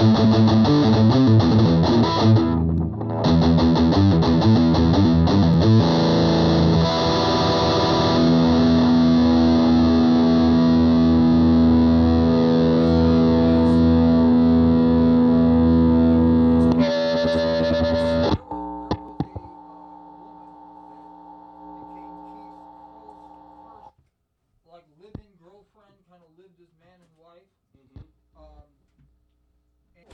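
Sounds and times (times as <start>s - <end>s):
guitars mix: 0.0s - 23.9s.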